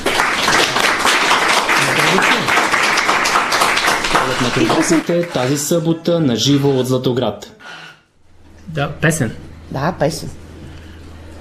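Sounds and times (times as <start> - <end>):
audience applause: 0.0 - 6.0
speech: 4.5 - 7.6, 8.7 - 10.4.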